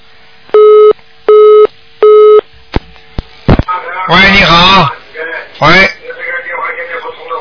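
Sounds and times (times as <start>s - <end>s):
telephone line tone while redialing call: 0.6s - 2.4s
speech: 4.1s - 5.0s, 5.6s - 6.0s.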